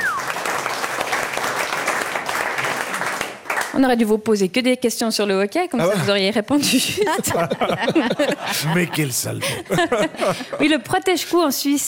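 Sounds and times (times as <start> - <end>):
high whistle-like tone: 0.0 - 0.4
audience clapping: 0.0 - 4.0
speech: 3.8 - 11.8
laughter: 5.8 - 10.9.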